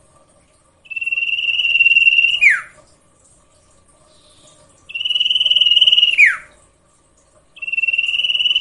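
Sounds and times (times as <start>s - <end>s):
sirtu cage bird song with buzzy rasping phrases and falling whistled slur: 0.8s - 2.8s, 4.0s - 6.6s, 7.6s - 8.5s.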